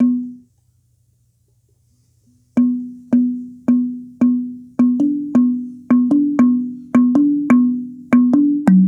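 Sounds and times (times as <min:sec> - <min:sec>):
African tongue drum: 0:00.0 - 0:00.4, 0:02.6 - 0:08.8.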